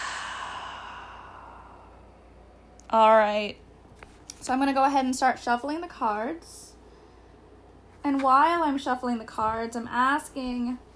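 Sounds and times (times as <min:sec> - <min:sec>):
deep breath out: 0:00.0 - 0:02.6
speech: 0:02.9 - 0:03.6, 0:04.4 - 0:06.7, 0:08.0 - 0:10.8.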